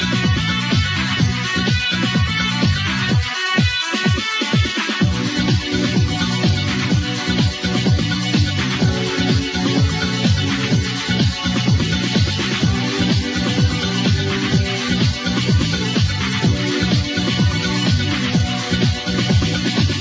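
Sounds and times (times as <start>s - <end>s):
saxophone: 0.0s - 19.9s.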